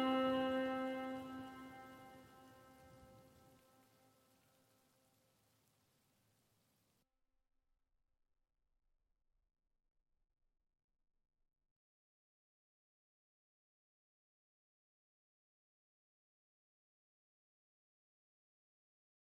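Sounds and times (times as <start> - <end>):
rain atmosphere: 0.0 - 6.8.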